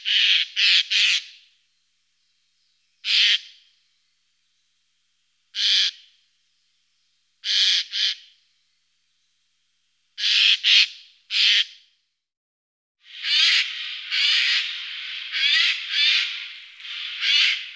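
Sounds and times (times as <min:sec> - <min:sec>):
Eurasian jay calling: 0:00.0 - 0:01.4, 0:03.0 - 0:03.6, 0:05.6 - 0:06.1, 0:07.4 - 0:08.3, 0:10.2 - 0:11.8, 0:13.1 - 0:17.7.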